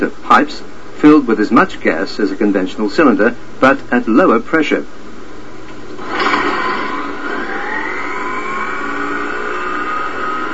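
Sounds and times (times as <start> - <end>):
speech: 0.0 - 5.0
low hum: 5.6 - 10.5
small rotary engine running on test rig: 6.0 - 10.5.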